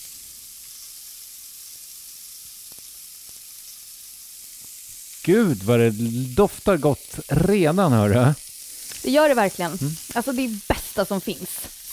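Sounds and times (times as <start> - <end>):
oyster mushrooms frying in butter in a hot pan: 0.0 - 11.9
speech: 5.2 - 8.4, 9.0 - 11.6
pops and crackles of frying butter: 8.8 - 11.9.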